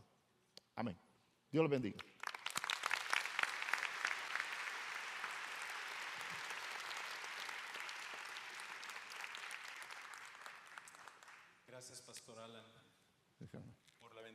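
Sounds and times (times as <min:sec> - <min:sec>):
speech: 0:00.8 - 0:02.1, 0:11.8 - 0:14.3
audience applause: 0:02.2 - 0:11.5.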